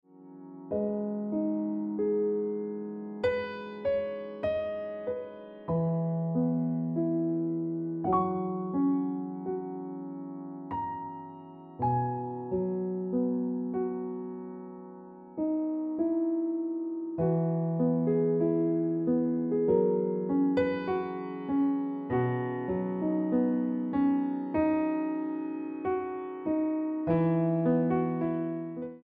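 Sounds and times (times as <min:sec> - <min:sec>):
piano ringtone music: 0:00.2 - 0:29.0.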